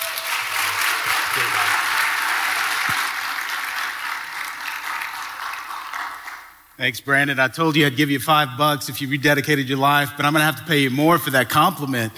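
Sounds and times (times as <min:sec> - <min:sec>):
church audience applause welcoming guest pastor Keith Baldridge: 0:00.0 - 0:06.6
speech: 0:06.8 - 0:12.1.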